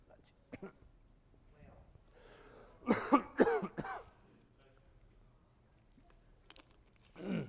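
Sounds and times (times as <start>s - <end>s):
faint noise: 0.0s - 7.4s
breathing: 2.1s - 2.8s
preacher coughing after choking mid-sermon: 2.8s - 4.2s, 7.2s - 7.4s.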